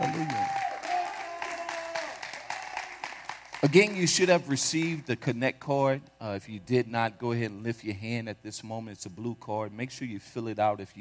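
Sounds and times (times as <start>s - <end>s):
audience hand clap: 0.0s - 5.0s
speech: 3.6s - 10.9s.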